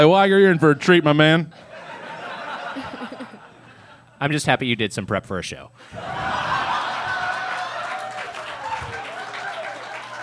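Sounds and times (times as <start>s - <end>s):
speech: 0.0s - 1.7s, 4.2s - 6.5s
laughter: 0.3s - 4.2s, 5.8s - 10.2s
small group applauding: 6.0s - 10.2s.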